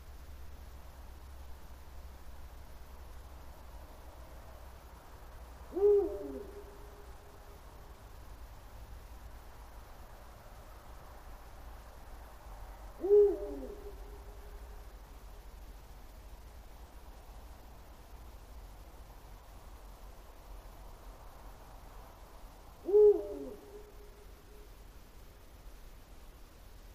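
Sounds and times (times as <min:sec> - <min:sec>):
night birds: 0:00.0 - 0:26.9
Bubo bubo eagle owl: 0:05.7 - 0:07.6, 0:13.0 - 0:14.8, 0:22.8 - 0:24.8.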